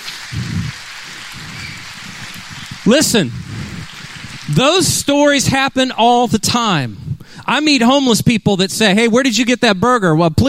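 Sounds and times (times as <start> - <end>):
audience applause for police officers and firefighters: 0.0 - 5.4
speech: 2.9 - 3.5, 4.5 - 10.4.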